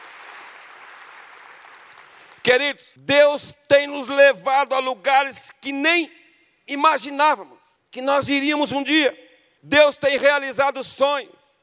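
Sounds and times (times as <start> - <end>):
audience applauding: 0.0 - 2.5
speech: 2.4 - 11.4.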